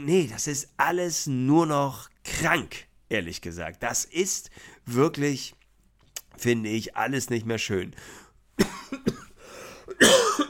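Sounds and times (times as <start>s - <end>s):
speech: 0.0s - 5.6s, 6.4s - 9.0s
person coughing: 8.6s - 10.4s.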